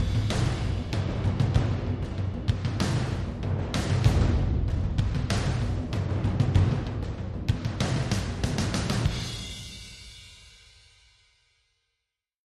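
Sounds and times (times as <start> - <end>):
adventure war drums: 0.0 - 9.7.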